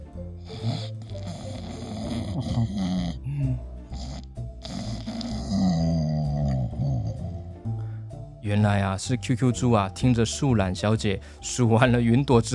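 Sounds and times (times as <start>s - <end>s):
snoring: 0.4s - 7.5s
speech: 2.4s - 2.9s, 8.5s - 12.5s.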